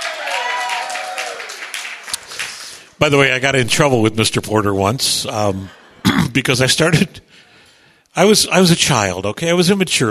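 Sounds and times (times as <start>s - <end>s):
audience applause: 0.0s - 2.8s
speech: 3.0s - 5.8s, 6.4s - 7.3s, 8.2s - 10.0s.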